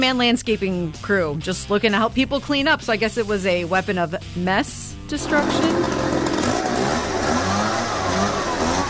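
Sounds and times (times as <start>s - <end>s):
speech: 0.0s - 6.2s
leaf blower engine revving: 5.2s - 8.8s.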